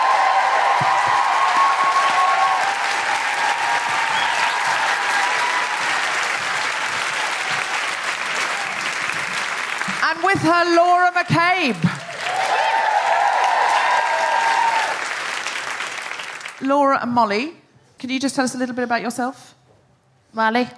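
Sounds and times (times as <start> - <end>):
audience woohooing and cheering: 0.0 - 10.0, 11.9 - 16.5
audience applause: 0.0 - 16.7
speech: 10.4 - 12.0, 16.6 - 19.6, 20.4 - 20.7.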